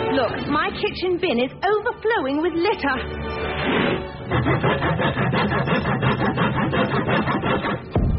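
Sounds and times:
speech: 0.2s - 8.0s
sawing: 3.6s - 8.0s.

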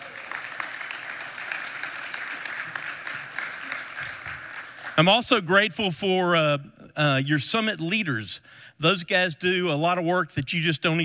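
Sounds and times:
audience clapping: 0.0s - 5.3s
speech: 5.0s - 11.0s.

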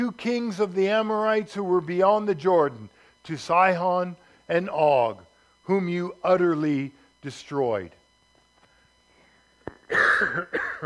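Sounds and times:
speech: 0.0s - 8.0s, 9.9s - 10.8s
throat clearing: 9.7s - 10.8s
cough: 9.8s - 10.8s.

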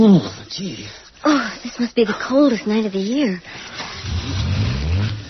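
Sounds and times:
speech: 0.1s - 3.6s
car engine starting and revving: 3.9s - 5.2s.

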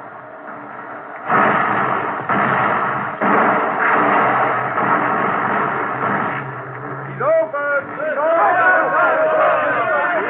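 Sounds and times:
explosive blast breaking a log jam: 1.2s - 7.6s
people shouting and cheering: 7.0s - 10.2s.

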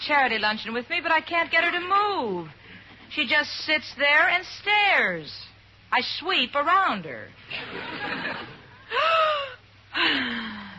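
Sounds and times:
speech: 0.1s - 9.3s, 10.0s - 10.5s
laughter: 7.5s - 9.5s
deep yoga breathing exercises: 8.9s - 10.7s.

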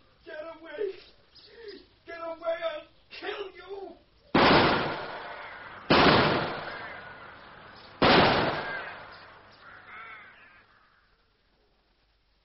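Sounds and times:
rifle gunshots: 4.4s - 9.5s.

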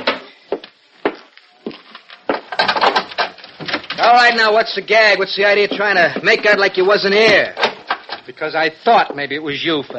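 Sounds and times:
wooden door being busted down: 2.3s - 4.4s, 5.7s - 8.3s
speech: 4.1s - 7.6s, 8.3s - 9.9s.

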